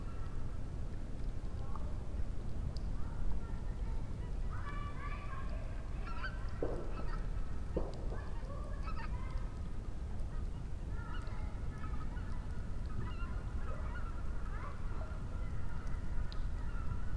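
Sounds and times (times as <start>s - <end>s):
campfire crackling: 0.0s - 17.1s
raindrops: 0.0s - 17.1s
child: 2.8s - 17.1s
fireworks: 6.6s - 8.5s.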